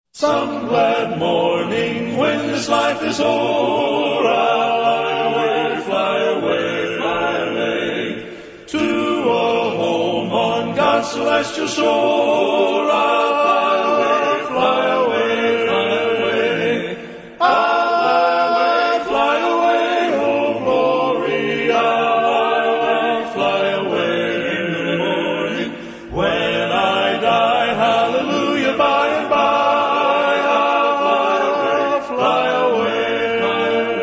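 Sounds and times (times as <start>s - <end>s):
a cappella hymn: 0.1s - 34.0s.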